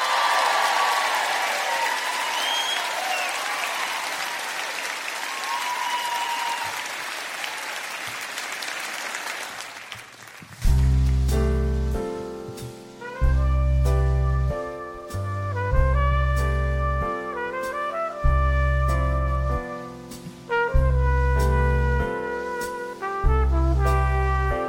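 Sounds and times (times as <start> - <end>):
audience applause welcoming a singer at a Christmas show: 0.0 - 10.9
music: 10.6 - 24.6.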